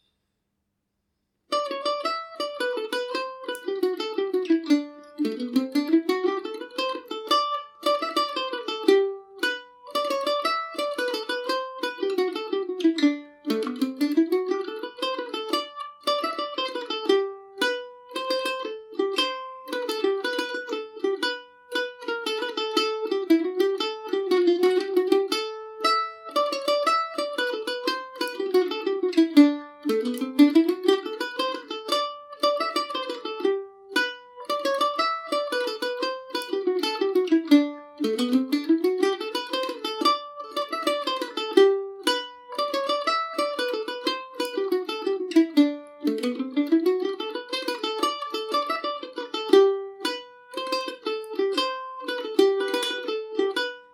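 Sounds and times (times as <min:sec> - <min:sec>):
mandolin playing in G major: 0:01.5 - 0:53.9.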